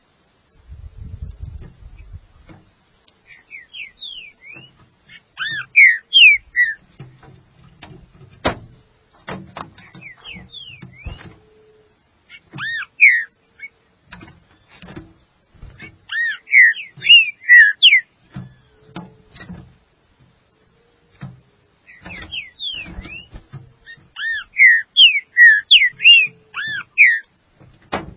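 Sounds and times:
green-winged saltator whistled song: 0:03.3 - 0:04.8, 0:05.4 - 0:06.8, 0:09.8 - 0:11.7, 0:12.3 - 0:13.7, 0:16.1 - 0:18.9, 0:21.9 - 0:27.3.

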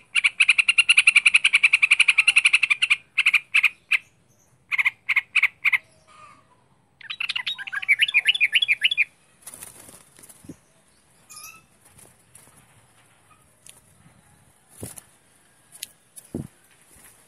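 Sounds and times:
bird chattering and chirping: 0:00.0 - 0:14.0
faint rustling: 0:09.4 - 0:17.2.

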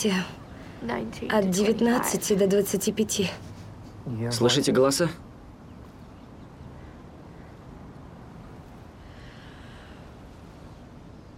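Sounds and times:
speech: 0:00.0 - 0:05.3
flock of crows cawing: 0:06.6 - 0:08.0.

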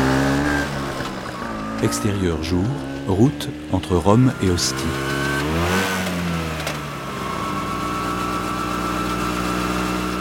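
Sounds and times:
scooter engine speeding along a road between Rome and Ostia: 0:00.0 - 0:10.2
speech: 0:01.8 - 0:05.2.

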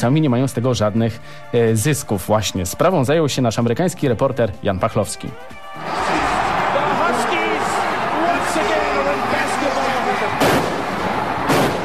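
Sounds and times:
speech: 0:00.0 - 0:06.0
arena crowd celebrating after basketball final: 0:05.6 - 0:11.8.

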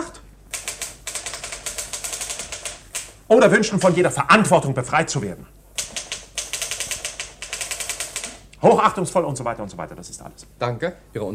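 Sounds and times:
typewriter typing a dictated letter: 0:00.5 - 0:04.5, 0:05.8 - 0:08.5
speech: 0:03.3 - 0:05.6, 0:08.6 - 0:11.3.

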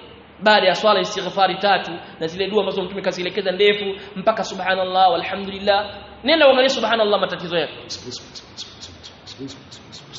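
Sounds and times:
low noise: 0:00.0 - 0:10.1
speech: 0:00.4 - 0:08.7, 0:09.4 - 0:10.0
bird calling: 0:07.8 - 0:10.1.

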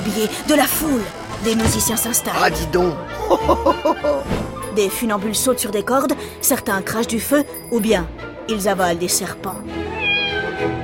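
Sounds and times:
speech: 0:00.1 - 0:09.9
laughter: 0:03.0 - 0:04.3
cat meowing: 0:09.9 - 0:10.8.

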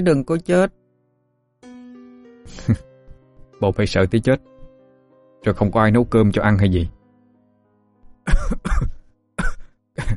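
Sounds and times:
speech: 0:00.0 - 0:00.8, 0:02.5 - 0:02.9, 0:03.6 - 0:04.5, 0:05.4 - 0:07.0
continuous fit of coughing: 0:08.2 - 0:10.1.

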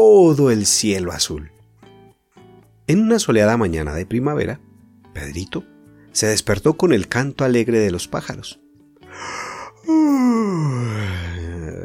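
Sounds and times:
speech: 0:00.0 - 0:01.6, 0:02.9 - 0:08.6
yawning and stretching groan: 0:09.6 - 0:11.8.

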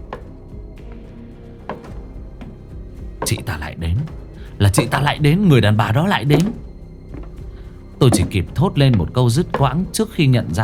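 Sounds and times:
high-heeled shoes clicking as footsteps in a horror story scene: 0:01.7 - 0:05.5, 0:06.2 - 0:10.0
speech: 0:03.3 - 0:06.6, 0:08.0 - 0:10.6.

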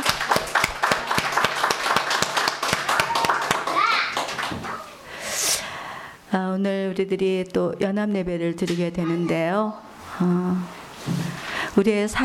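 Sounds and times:
audience applause: 0:00.0 - 0:04.9
speech: 0:06.5 - 0:11.2, 0:11.8 - 0:12.2.

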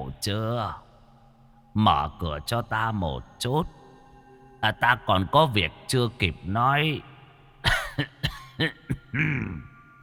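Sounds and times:
speech: 0:00.1 - 0:00.9, 0:01.8 - 0:03.8, 0:04.6 - 0:07.1, 0:08.0 - 0:09.7
violent hacking cough: 0:07.6 - 0:09.7.

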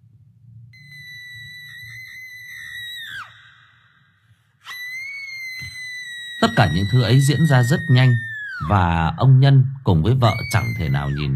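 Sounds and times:
ghostly female spirit shrieking: 0:00.8 - 0:08.7
speech: 0:06.4 - 0:11.3.

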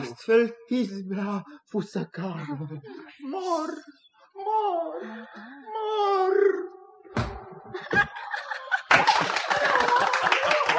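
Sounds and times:
speech: 0:00.1 - 0:08.5
laughter: 0:02.2 - 0:04.0, 0:07.6 - 0:10.7
audience clapping hands: 0:08.8 - 0:10.7.

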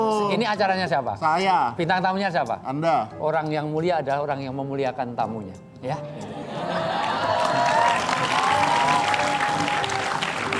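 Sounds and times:
speech: 0:00.3 - 0:06.9
laughter: 0:06.1 - 0:09.2
audience applause: 0:06.8 - 0:10.5.

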